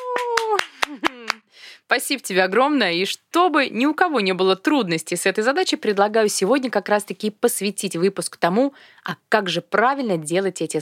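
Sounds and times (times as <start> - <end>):
hand claps: 0.0 - 1.4
voiced whoop sliding downward in pitch: 0.0 - 1.4
speech: 1.9 - 10.7.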